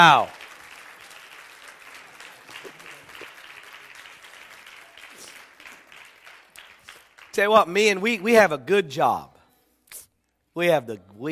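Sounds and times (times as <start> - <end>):
speech: 0.0 - 0.4, 7.4 - 9.3, 10.6 - 11.3
audience applause: 0.0 - 7.5.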